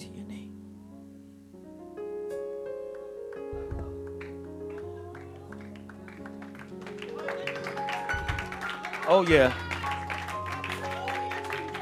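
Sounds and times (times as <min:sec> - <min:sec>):
sustained music during a church service: 0:00.0 - 0:11.7
rhythmic hand clapping of praise during a church service: 0:02.9 - 0:11.7
speech: 0:09.1 - 0:09.6.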